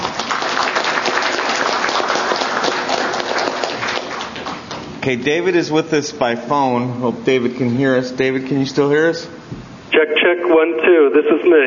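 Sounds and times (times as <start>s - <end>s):
audience applause: 0.0s - 4.9s
speech: 5.0s - 11.6s.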